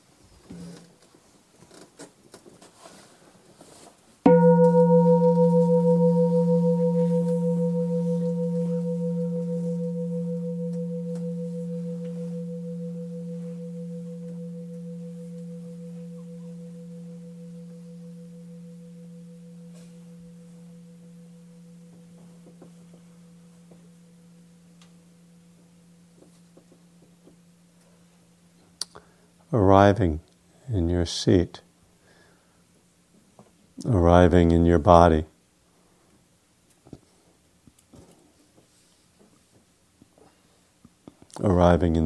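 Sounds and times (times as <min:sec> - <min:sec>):
meditation bell ringing: 0:04.3 - 0:29.3
speech: 0:29.6 - 0:31.6, 0:33.9 - 0:35.3, 0:41.8 - 0:42.0.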